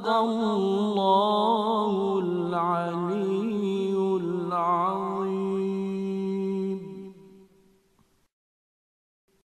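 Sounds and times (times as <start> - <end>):
Mujawwad melodic recitation: 0.0 - 7.4.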